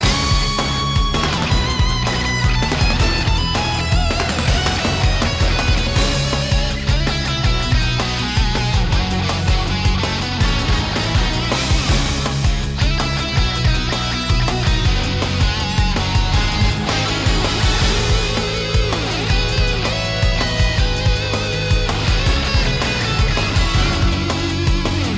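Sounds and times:
battle background music: 0.0 - 25.1.

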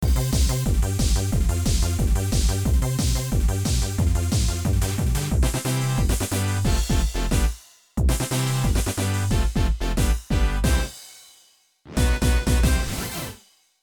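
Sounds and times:
remix music with tempo up: 0.1 - 11.0, 11.9 - 13.4.

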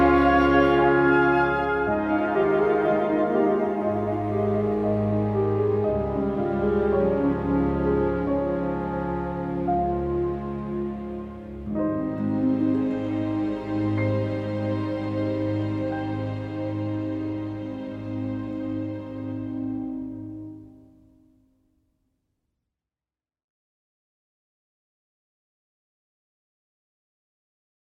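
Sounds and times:
field background music: 0.0 - 21.5.

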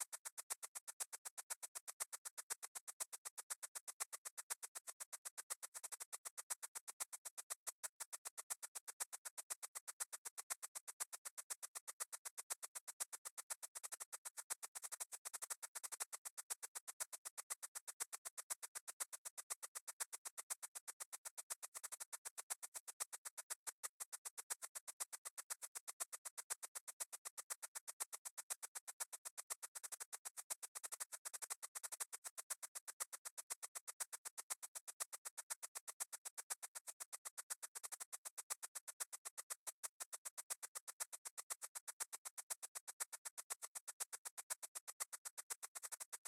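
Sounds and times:
shaker: 0.0 - 46.2.

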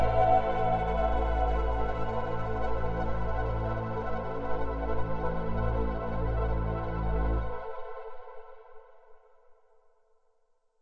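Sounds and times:
ambient music: 0.0 - 7.9.

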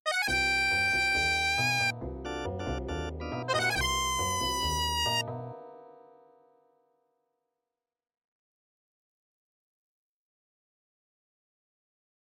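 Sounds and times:
MIDI animation music stings: 0.1 - 5.2.

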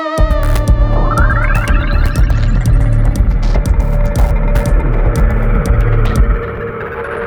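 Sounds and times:
round start sound: 0.2 - 7.2.

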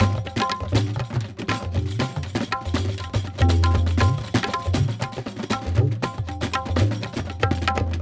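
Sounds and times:
action percussion music: 0.0 - 7.9.

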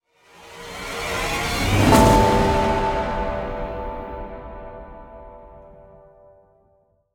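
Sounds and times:
heroic music stinger for a hero appearing: 0.7 - 5.4.

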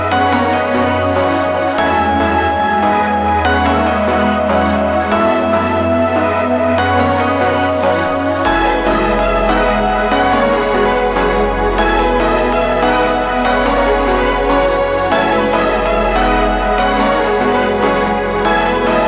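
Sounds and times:
triumphant story music: 0.2 - 19.0.

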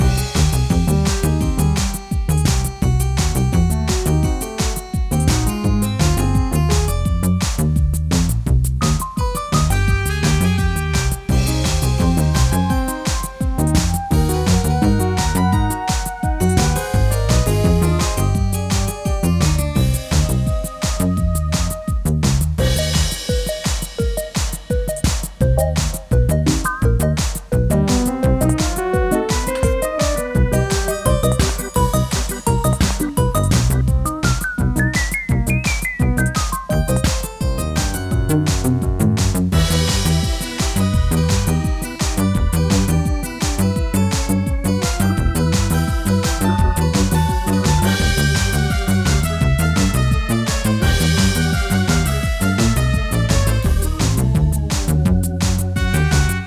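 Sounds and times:
generic medium combat music: 0.0 - 56.4.

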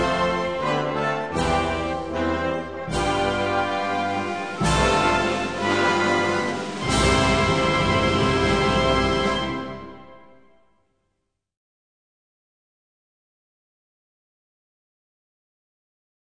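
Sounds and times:
national anthem: 0.0 - 10.6.

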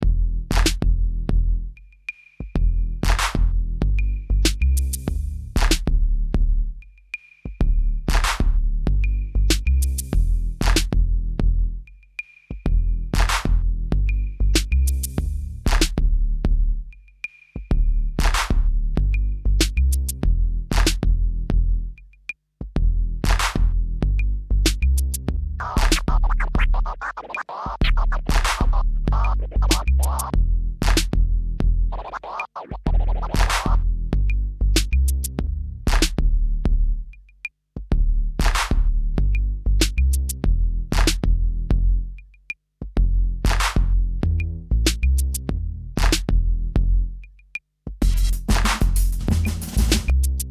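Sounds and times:
rhythm: 0.0 - 50.4.

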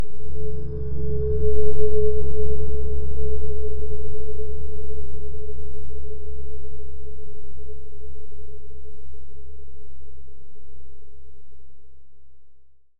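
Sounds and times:
droning tones: 0.0 - 9.3.

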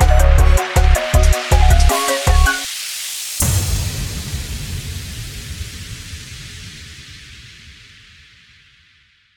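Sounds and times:
instrumental music: 0.0 - 2.7.

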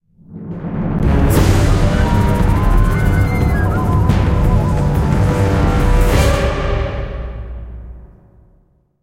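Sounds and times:
terror music sting: 1.0 - 8.1.

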